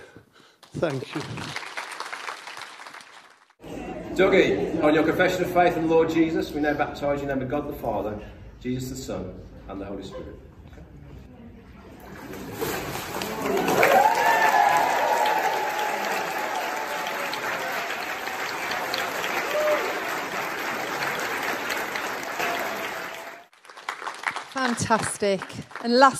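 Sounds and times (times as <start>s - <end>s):
audience applause: 0.6s - 3.6s, 13.0s - 26.1s
speech: 0.8s - 1.7s, 4.2s - 10.5s, 24.9s - 26.1s
cheers and whoops: 13.4s - 20.4s.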